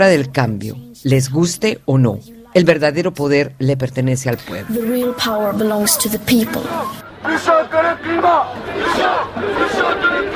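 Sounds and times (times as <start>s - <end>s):
speech: 0.0s - 10.3s
dense roar of crowd babble: 4.3s - 10.3s
thousands of students shouting at climate strike: 6.5s - 10.3s.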